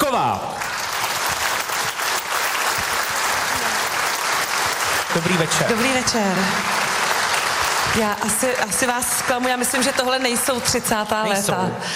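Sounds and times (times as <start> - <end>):
audience applause: 0.0 - 11.2
speech: 5.2 - 6.8, 7.9 - 11.9.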